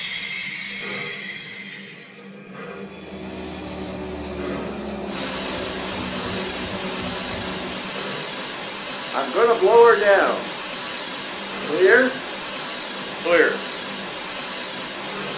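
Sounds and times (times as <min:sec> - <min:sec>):
trains: 0:00.0 - 0:15.3.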